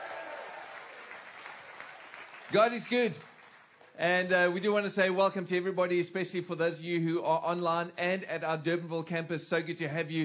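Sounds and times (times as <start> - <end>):
audience cheering: 0.0 - 3.5
audience applauding: 0.0 - 4.0
speech: 2.5 - 3.3, 4.0 - 10.2.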